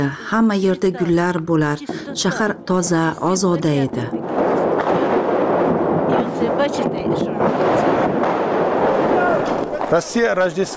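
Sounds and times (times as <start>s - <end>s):
speech: 0.0s - 4.4s, 6.6s - 8.1s, 9.9s - 10.7s
explosions in the streets of Bakhmut: 2.4s - 10.7s.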